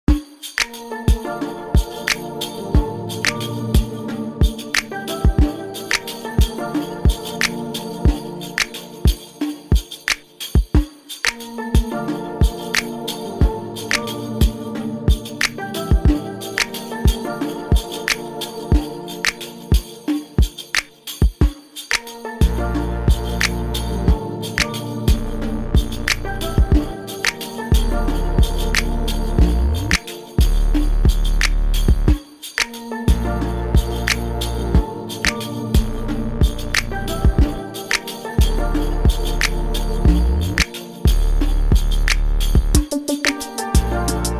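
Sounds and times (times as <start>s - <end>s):
Afrobeat music: 0.1s - 44.3s.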